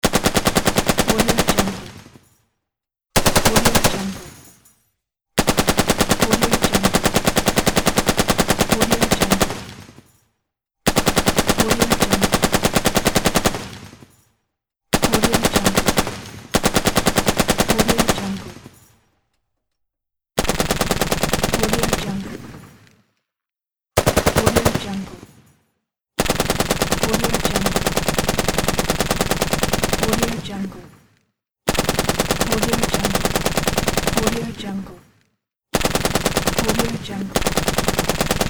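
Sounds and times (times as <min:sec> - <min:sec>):
heavy machine gun firing: 0:00.0 - 0:02.1, 0:03.2 - 0:04.5, 0:05.4 - 0:09.9, 0:10.9 - 0:14.2, 0:15.0 - 0:18.9, 0:20.4 - 0:22.7, 0:24.0 - 0:25.3, 0:26.2 - 0:30.9, 0:31.7 - 0:34.8, 0:35.8 - 0:38.4.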